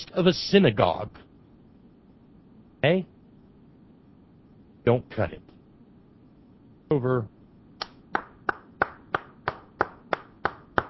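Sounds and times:
speech: 0.1 - 1.2, 2.8 - 3.2, 4.8 - 5.5, 6.9 - 7.4
hands clapping: 7.8 - 10.8.

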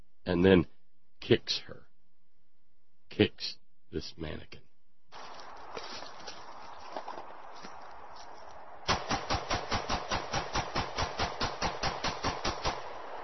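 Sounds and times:
speech: 0.3 - 1.8, 3.1 - 4.6
17-round semi-automatic pistol fired point blank into a mannequin: 8.9 - 13.2.

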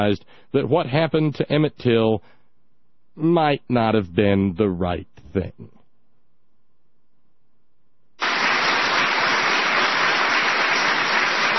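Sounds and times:
speech: 0.0 - 2.4, 3.2 - 5.8
audience applause: 8.2 - 11.5.

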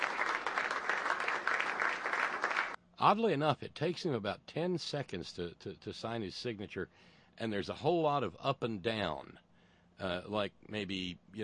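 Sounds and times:
audience applause: 0.0 - 2.8
speech: 3.0 - 9.4, 10.0 - 11.4.

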